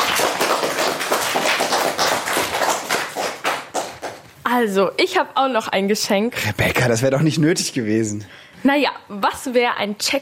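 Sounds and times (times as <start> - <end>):
applause: 0.0 - 4.2
speech: 4.6 - 10.1.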